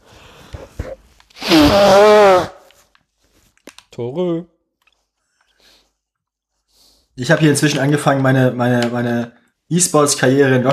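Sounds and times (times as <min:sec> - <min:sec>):
nose blowing: 0:00.6 - 0:02.7
speech: 0:01.7 - 0:02.6, 0:04.0 - 0:04.5, 0:07.2 - 0:10.7.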